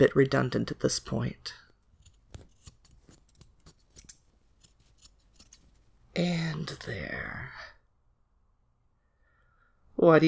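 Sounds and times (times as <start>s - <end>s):
speech: 0.0s - 1.6s, 6.2s - 7.6s, 10.0s - 10.2s
scissors cutting off a costume: 2.0s - 5.8s.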